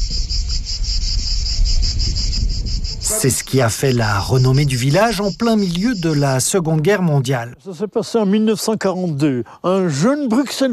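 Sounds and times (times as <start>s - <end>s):
cicada song: 0.0s - 7.8s
speech: 3.1s - 10.7s.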